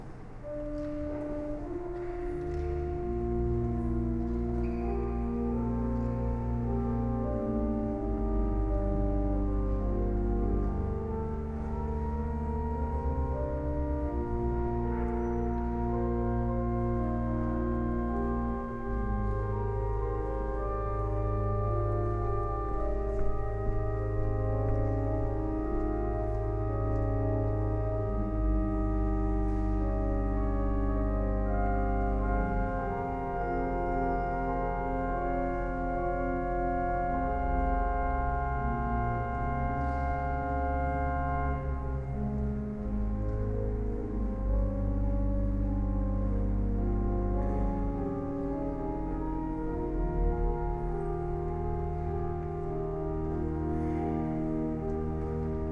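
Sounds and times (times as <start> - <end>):
organ interlude: 0.0 - 55.7.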